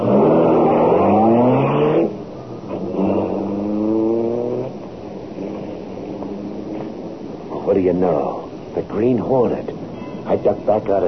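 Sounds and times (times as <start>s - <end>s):
car engine revving and speeding away: 0.0s - 7.2s
speech: 7.8s - 8.4s, 9.0s - 11.0s.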